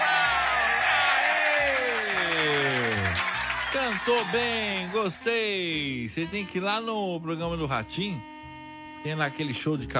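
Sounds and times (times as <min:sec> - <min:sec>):
applause and cheering: 0:00.0 - 0:06.0
speech: 0:03.8 - 0:08.3, 0:09.0 - 0:09.9.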